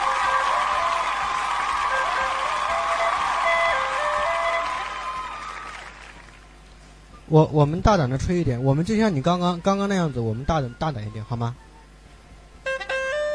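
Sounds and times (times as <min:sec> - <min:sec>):
audience applause: 0:00.0 - 0:06.5
speech: 0:07.3 - 0:11.7.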